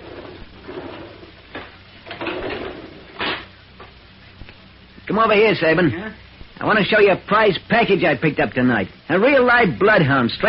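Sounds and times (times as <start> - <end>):
garage doors being pulled shut: 0.0 - 3.5
speech: 5.1 - 10.4.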